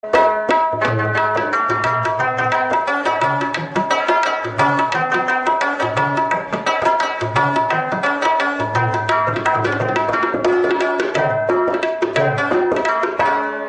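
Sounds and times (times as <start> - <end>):
tabla playing: 0.0 - 13.6.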